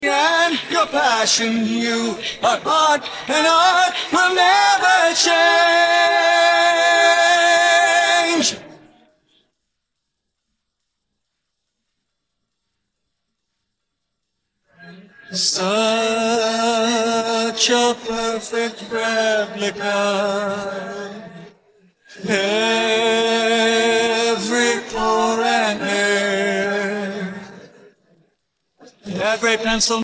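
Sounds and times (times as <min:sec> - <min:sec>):
person singing: 0:00.0 - 0:08.7, 0:14.8 - 0:21.5, 0:22.1 - 0:27.8.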